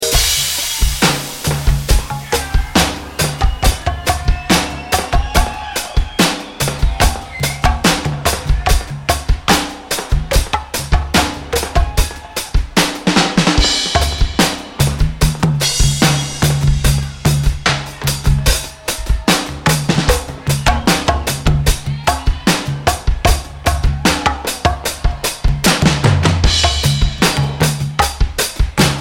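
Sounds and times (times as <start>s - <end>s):
dub drum beat: 0.0s - 28.9s.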